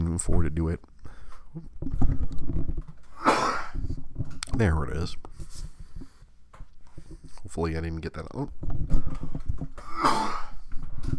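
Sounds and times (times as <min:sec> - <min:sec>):
speech: 0:00.2 - 0:00.9, 0:01.5 - 0:02.3, 0:04.6 - 0:05.3, 0:07.5 - 0:09.4
person coughing fit: 0:03.1 - 0:03.8, 0:09.8 - 0:10.7.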